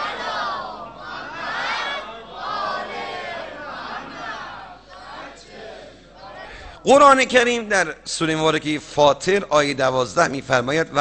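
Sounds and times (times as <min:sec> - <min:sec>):
large crowd chanting salawat in unison: 0:00.0 - 0:06.8
speech: 0:06.8 - 0:11.0.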